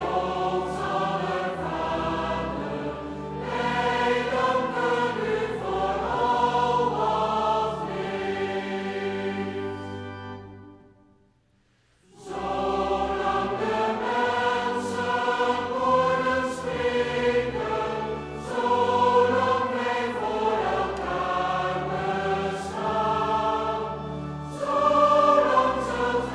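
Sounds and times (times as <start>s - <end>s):
mixed choir singing: 0.0s - 10.2s, 12.0s - 26.3s.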